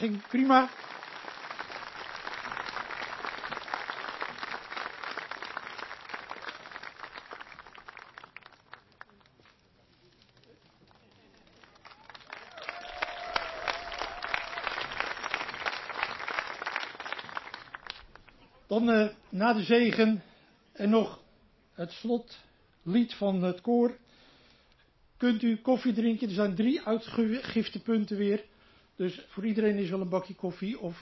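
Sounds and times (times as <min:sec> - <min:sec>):
speech: 0:00.0 - 0:00.9, 0:18.8 - 0:21.2, 0:21.8 - 0:24.0, 0:25.2 - 0:31.0
crowd applauding: 0:00.0 - 0:18.7.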